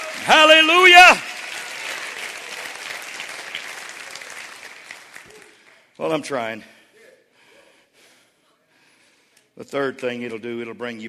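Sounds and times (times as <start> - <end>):
audience clapping: 0.0 - 6.2
speech: 0.2 - 1.3, 6.0 - 6.8, 9.6 - 11.0.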